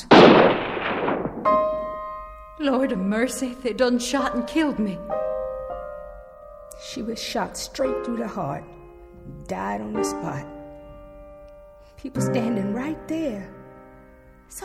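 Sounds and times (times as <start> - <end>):
gunshot: 0.1 - 1.9
underscore music: 0.1 - 14.5.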